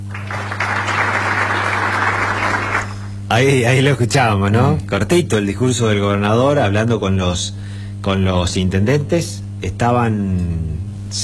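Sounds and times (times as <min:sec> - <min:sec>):
audience clapping after a governor's speech to about forty mayors: 0:00.0 - 0:03.3
low constant hum: 0:00.0 - 0:11.2
speech: 0:03.4 - 0:11.2.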